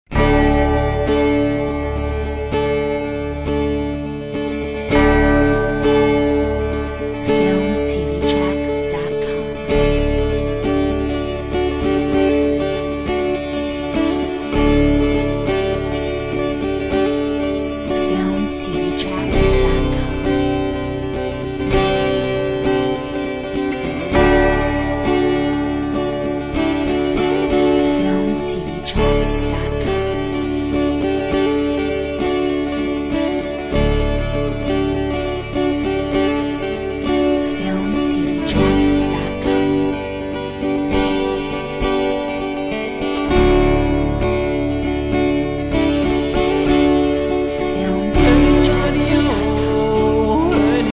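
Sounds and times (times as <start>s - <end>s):
celtic tune: 0.2s - 50.9s.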